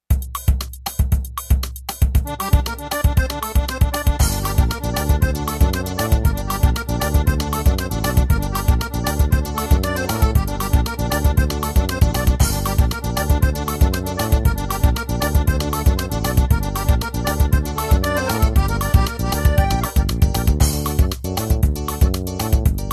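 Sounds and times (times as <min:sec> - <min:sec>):
Yamaha keyboard forro pe de serra rhythm: 0:00.0 - 0:22.9.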